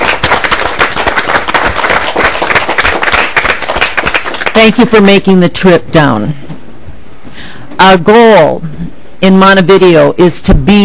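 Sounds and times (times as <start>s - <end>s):
audience applause: 0.0s - 4.7s
speech: 4.6s - 6.5s, 7.4s - 10.8s.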